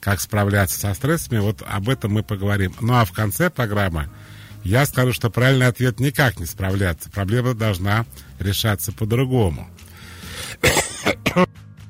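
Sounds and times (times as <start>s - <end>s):
speech: 0.0s - 9.8s
man coughing during a radio talk: 10.5s - 11.5s
throat clearing: 10.5s - 11.5s.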